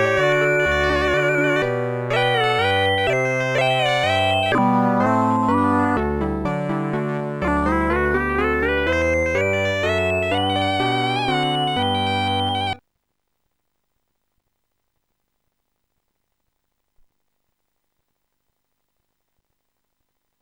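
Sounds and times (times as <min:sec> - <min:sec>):
minuet: 0:00.0 - 0:12.8.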